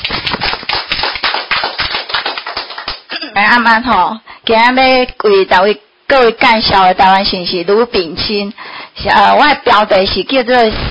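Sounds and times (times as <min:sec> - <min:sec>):
audience applause: 0:00.0 - 0:03.1
speech: 0:03.4 - 0:10.8.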